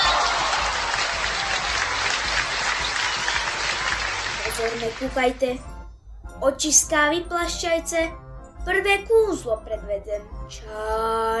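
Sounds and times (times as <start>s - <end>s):
applause: 0.0s - 5.5s
speech: 4.6s - 5.7s, 6.4s - 11.3s.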